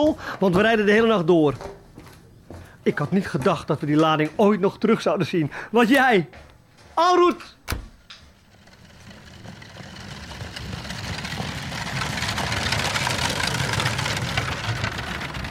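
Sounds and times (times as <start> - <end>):
speech: 0.0 - 1.8, 2.8 - 7.8
horse-drawn carriage wheels turning: 8.2 - 15.4.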